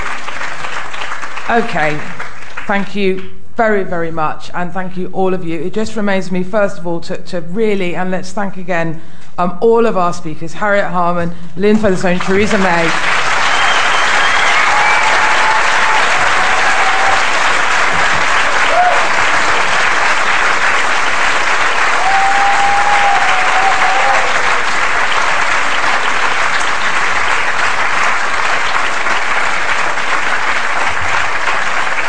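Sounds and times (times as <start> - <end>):
large audience applause: 0.0 - 2.8, 12.2 - 32.0
speech: 1.5 - 13.2
faint cheers and whistles: 13.2 - 17.5, 21.9 - 24.7.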